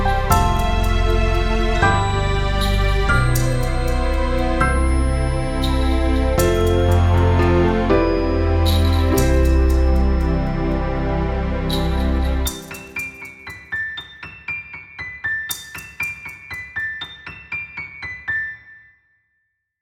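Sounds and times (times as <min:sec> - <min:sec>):
glittering winter Christmas background music: 0:00.0 - 0:14.0.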